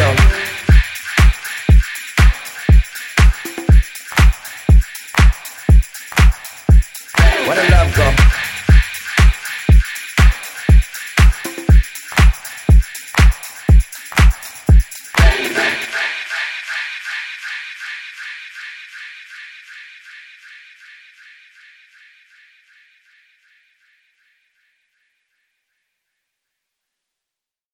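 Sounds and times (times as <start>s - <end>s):
remixed music: 0.0s - 16.6s.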